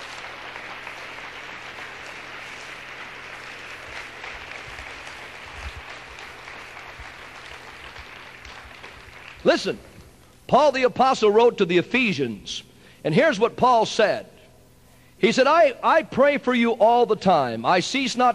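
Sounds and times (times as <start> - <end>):
audience clapping: 0.0 - 10.2
speech: 9.4 - 9.9, 10.5 - 14.3, 15.2 - 18.3.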